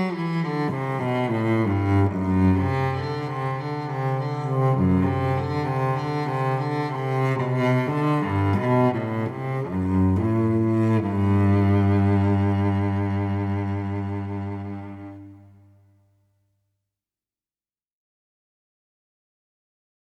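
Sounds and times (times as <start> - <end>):
cello solo melody: 0.0 - 15.9.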